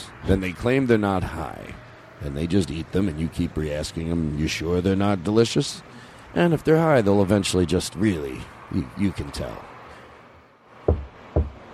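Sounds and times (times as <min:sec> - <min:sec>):
speech: 0:00.2 - 0:09.7
footsteps on the way to a car faked by hand: 0:10.9 - 0:11.7.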